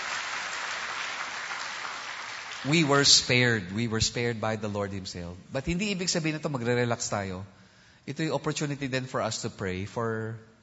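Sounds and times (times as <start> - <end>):
church congregation clapping in praise: 0.0 - 3.4
speech: 2.6 - 10.5.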